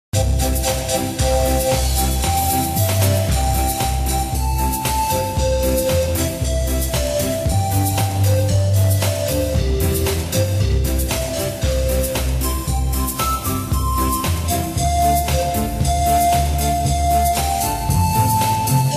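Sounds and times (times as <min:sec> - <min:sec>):
instrumental music beat: 0:00.1 - 0:18.9.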